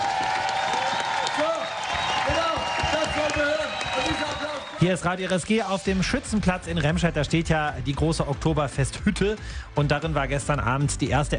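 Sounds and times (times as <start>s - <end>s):
audience applause at comedy show: 0.0s - 6.2s
speech: 4.8s - 11.3s.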